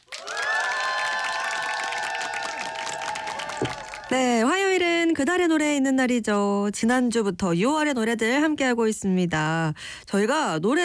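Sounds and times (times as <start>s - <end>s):
applause and cheering: 0.0s - 4.5s
speech: 3.6s - 10.8s.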